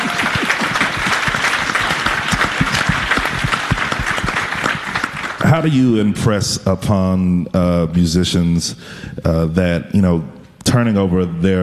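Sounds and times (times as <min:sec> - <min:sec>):
applause: 0:00.0 - 0:06.0
speech: 0:05.6 - 0:11.6.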